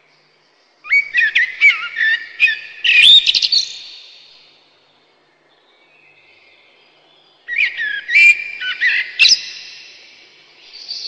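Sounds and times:
common blackbird whistling: 0:00.9 - 0:04.0, 0:07.5 - 0:09.8.

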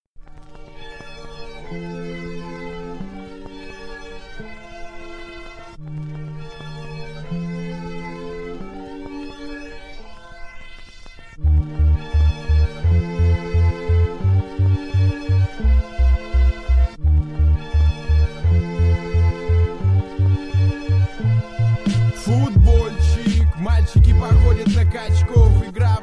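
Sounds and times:
bass: 0:11.4 - 0:26.0.

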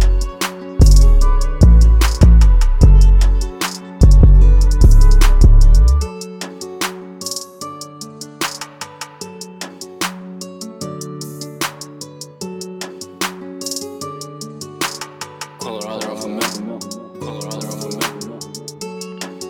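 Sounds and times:
sad ocean-themed music: 0:00.0 - 0:06.9.

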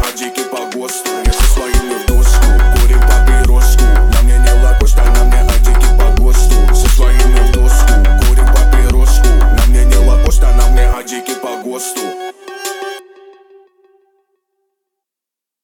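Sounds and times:
low bass tone at 41 to 46 Hz: 0:01.3 - 0:11.0.

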